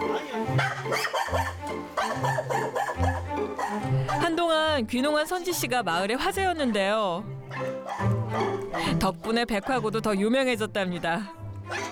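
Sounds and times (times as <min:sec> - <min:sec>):
dog barking in yappy bursts: 0:00.5 - 0:04.2, 0:07.5 - 0:09.0, 0:09.6 - 0:09.9, 0:11.7 - 0:11.9
speech: 0:04.8 - 0:11.8.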